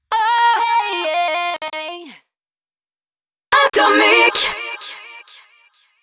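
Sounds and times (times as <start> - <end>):
a cappella jingle: 0.1 - 2.0, 3.6 - 5.6.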